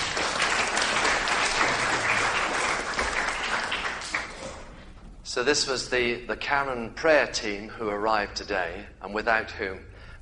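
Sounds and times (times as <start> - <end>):
audience applause: 0.0 - 4.8
speech: 5.3 - 9.9.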